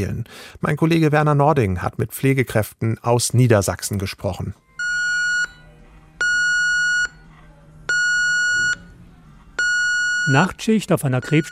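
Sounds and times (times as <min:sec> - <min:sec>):
speech: 0:00.0 - 0:04.6, 0:10.3 - 0:11.5
ECG monitor alarm beeping: 0:04.8 - 0:05.6, 0:06.2 - 0:07.2, 0:07.9 - 0:08.9, 0:09.6 - 0:11.5.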